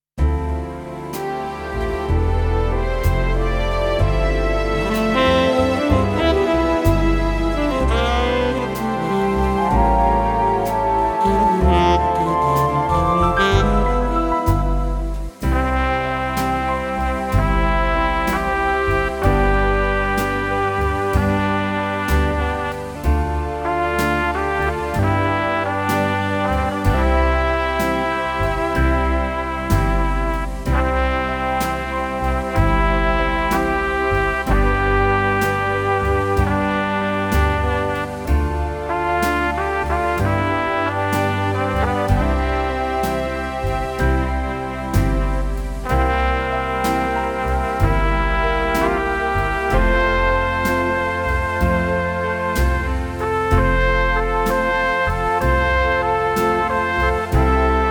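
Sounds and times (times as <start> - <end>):
keyboard: 0.2 - 57.8.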